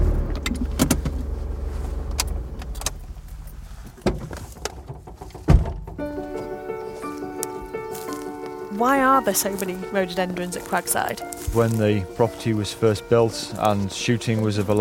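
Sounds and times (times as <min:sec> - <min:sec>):
clunks: 0:00.0 - 0:06.6
car engine rumble pulling over on an estate drive among rhododendrons: 0:00.0 - 0:07.8
speech: 0:08.8 - 0:14.7.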